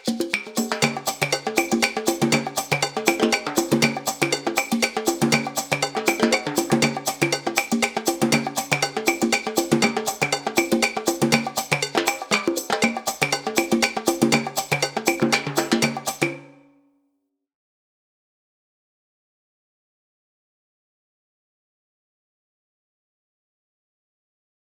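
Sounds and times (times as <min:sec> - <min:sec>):
coconut drum solo: 0:00.3 - 0:16.6.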